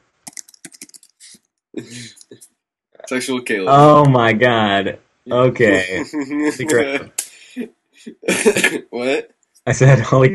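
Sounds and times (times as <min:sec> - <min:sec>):
typing a message on a computer keyboard: 0:00.3 - 0:01.4
laughter: 0:01.8 - 0:02.4, 0:05.7 - 0:09.2
speech: 0:01.8 - 0:10.3.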